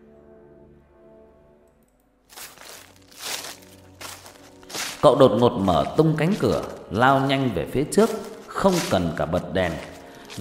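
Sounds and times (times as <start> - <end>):
rustling, someone rummaging through things: 2.3 - 10.3
speech: 5.0 - 10.3.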